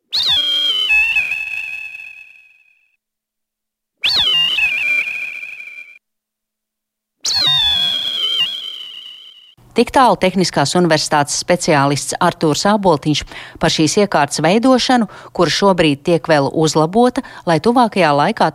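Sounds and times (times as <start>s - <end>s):
computer-synthesized bird distress calls: 0.0s - 2.8s, 4.0s - 6.0s, 7.2s - 9.6s
speech: 9.8s - 18.5s.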